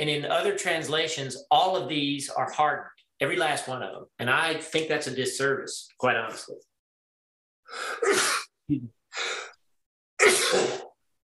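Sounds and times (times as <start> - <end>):
speech: 0.0 - 6.7, 7.7 - 9.4
sneeze: 8.0 - 8.5, 10.2 - 11.0.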